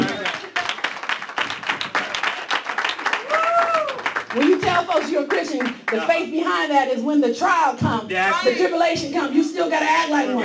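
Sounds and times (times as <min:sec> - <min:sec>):
audience clapping hands: 0:00.0 - 0:06.2
speech: 0:05.0 - 0:10.4.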